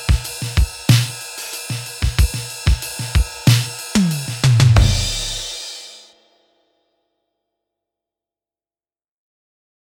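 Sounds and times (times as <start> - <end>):
eighties pop grooves: 0.0 - 5.6.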